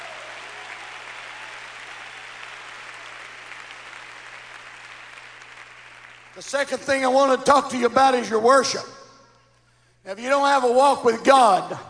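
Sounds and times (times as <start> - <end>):
audience clapping hands: 0.0 - 7.6
speech: 6.4 - 9.0, 10.0 - 11.8.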